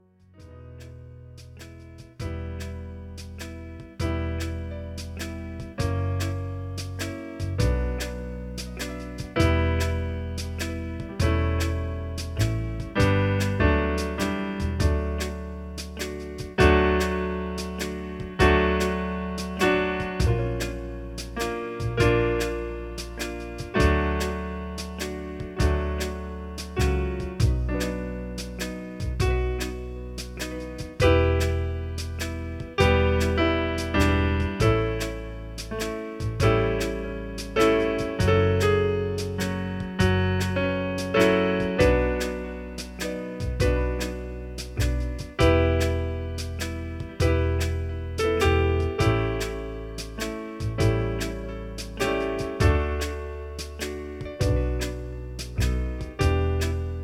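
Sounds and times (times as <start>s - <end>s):
backing track chorus: 0.4s - 57.0s.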